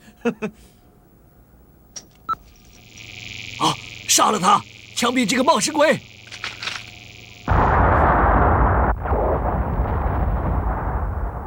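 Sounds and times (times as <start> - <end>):
speech: 0.2 - 0.8, 3.6 - 6.1
explosion: 7.5 - 11.4.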